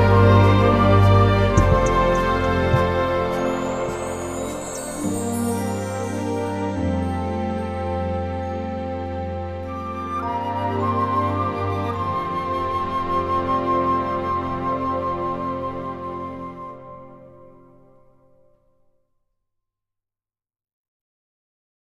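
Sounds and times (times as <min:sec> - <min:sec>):
symphonic music: 0:00.0 - 0:17.5.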